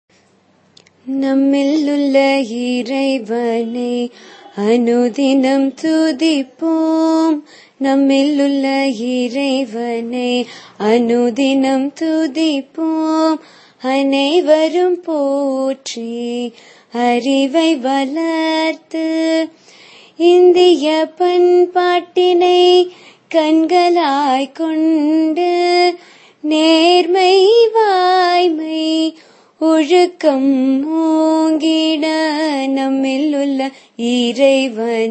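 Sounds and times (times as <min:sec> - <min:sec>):
prayer song: 0:01.0 - 0:35.0.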